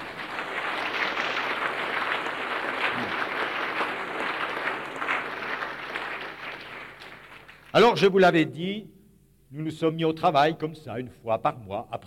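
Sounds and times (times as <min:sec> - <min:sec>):
audience applause: 0:00.0 - 0:07.9
speech: 0:07.7 - 0:08.9, 0:09.5 - 0:12.0.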